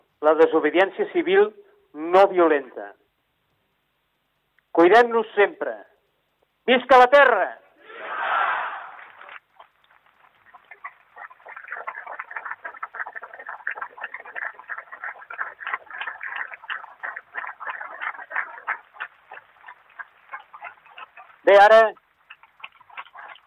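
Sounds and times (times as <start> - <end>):
speech: 0.2 - 3.0, 4.8 - 5.9, 6.7 - 7.6, 21.5 - 22.0
crowd cheering and shouting: 7.8 - 9.2
crowd applause: 7.9 - 9.4.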